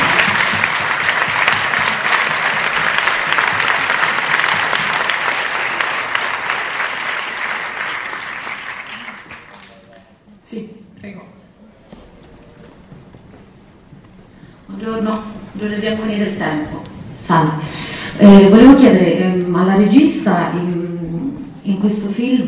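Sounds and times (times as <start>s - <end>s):
audience applause: 0.0s - 10.1s
speech: 15.7s - 16.7s, 18.2s - 20.8s, 21.7s - 22.4s.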